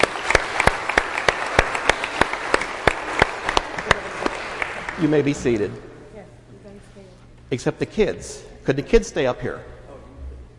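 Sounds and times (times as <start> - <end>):
audience applause: 0.0 - 5.5
speech: 5.0 - 5.9, 7.5 - 9.8.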